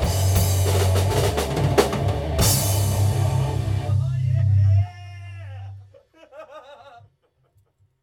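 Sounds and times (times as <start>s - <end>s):
riff: 0.0s - 5.9s
laughter: 5.5s - 7.8s.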